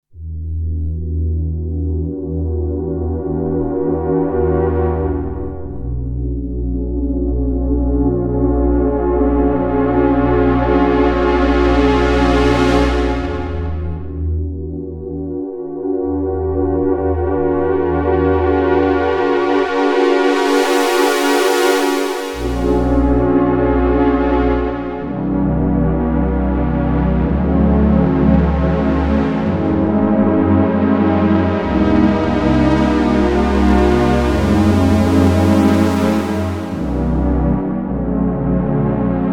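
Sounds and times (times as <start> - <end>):
JX synth pad: 0.1 - 39.3.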